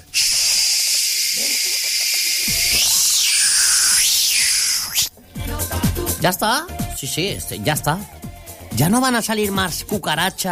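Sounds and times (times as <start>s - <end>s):
pest spray hissing: 0.0s - 5.1s
speech: 6.2s - 8.2s, 8.8s - 10.5s.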